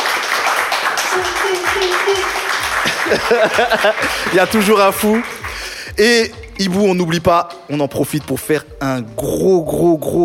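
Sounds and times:
audience applause: 0.0 - 6.6
crowd shouting and cheering: 1.0 - 5.7
laughter: 1.1 - 6.3
speech: 3.1 - 5.4, 6.0 - 10.2.

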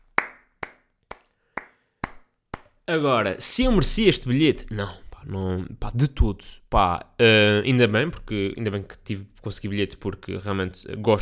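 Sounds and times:
hand claps from a lone clapper: 0.0 - 2.8
speech: 2.9 - 11.2.

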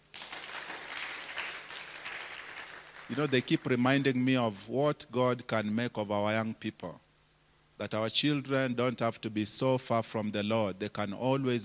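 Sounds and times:
audience clapping: 0.0 - 3.8
speech: 3.1 - 7.0, 7.8 - 11.6.

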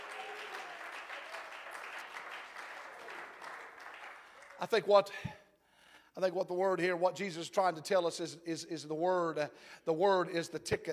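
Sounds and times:
audience clapping hands in praise: 0.0 - 5.0
speech: 4.6 - 5.4, 6.2 - 10.9.

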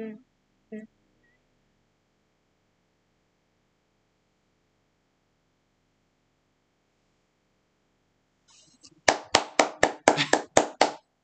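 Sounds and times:
people clapping: 9.1 - 11.0.

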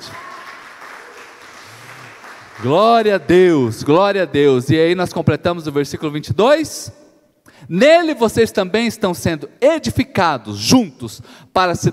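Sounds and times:
audience applause: 0.0 - 3.3
speech: 2.6 - 7.0, 7.7 - 11.9.

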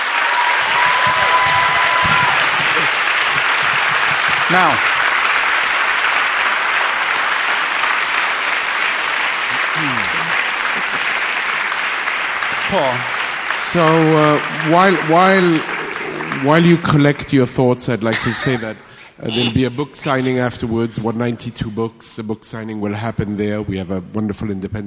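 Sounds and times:
audience applause: 0.0 - 18.6
laughter: 0.8 - 5.1, 13.8 - 21.7
speech: 4.5 - 4.9, 12.7 - 15.8, 16.4 - 24.8.

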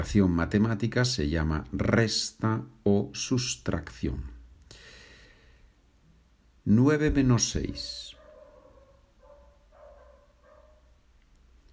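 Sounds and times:
speech: 0.0 - 4.4, 6.6 - 8.1
dog barking in the street: 7.6 - 11.0.

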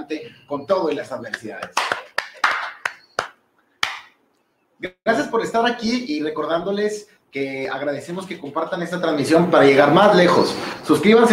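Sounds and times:
speech: 0.1 - 2.0, 4.8 - 11.3
sparse hand claps: 0.9 - 4.1.

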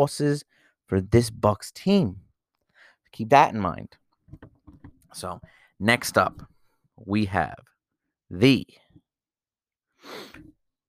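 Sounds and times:
speech: 0.0 - 2.2, 3.1 - 4.5, 5.1 - 7.7, 8.3 - 8.8
person sniffling: 10.0 - 10.5.

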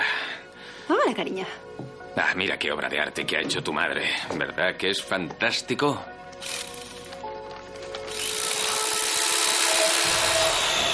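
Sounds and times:
speech: 0.9 - 6.7
electric carving knife slicing through a turkey: 8.1 - 10.9.

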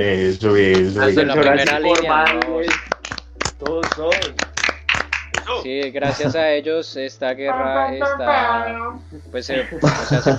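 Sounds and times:
speech: 0.0 - 2.8, 3.6 - 4.5, 5.5 - 10.3
laughter: 0.0 - 4.4, 5.5 - 8.5, 9.3 - 10.3
applause: 0.7 - 6.2.

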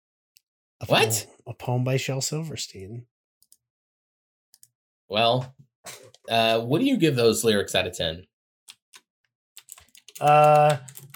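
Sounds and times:
speech: 0.8 - 3.1, 5.1 - 8.3, 10.2 - 11.1
typing on a computer keyboard: 9.6 - 11.1.

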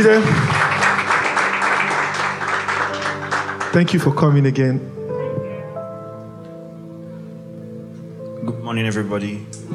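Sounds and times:
speech: 0.0 - 0.5, 3.7 - 5.0, 8.7 - 9.6
audience applause: 0.0 - 4.1.

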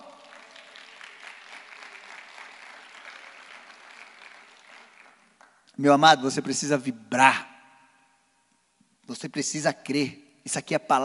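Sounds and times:
audience applause: 0.0 - 5.6
speech: 5.8 - 7.5, 9.1 - 11.0.

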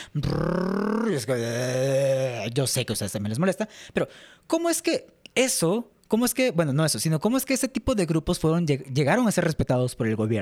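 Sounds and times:
speech: 0.1 - 10.4
voice imitating a loud motorcycle engine: 0.2 - 2.4.

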